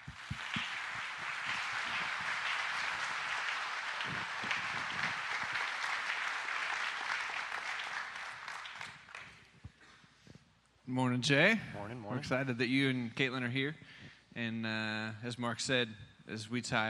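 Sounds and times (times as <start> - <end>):
audience applauding to welcome a guest: 0.0 - 9.5
speech: 10.9 - 16.8.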